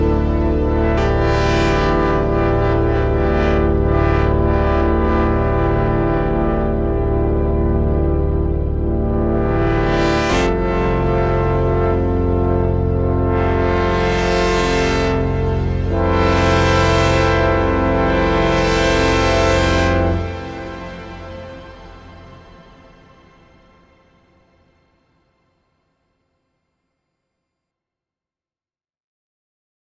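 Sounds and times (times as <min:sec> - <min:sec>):
Enhancia Neova filtered synth pad: 0:00.0 - 0:23.9.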